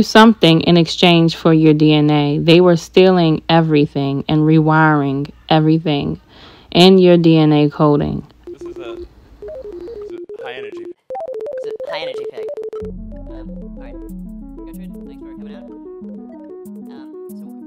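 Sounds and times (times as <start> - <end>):
speech: 0.0 - 9.0, 11.9 - 14.2
beeps from the neural link brain implant signal: 8.4 - 17.6.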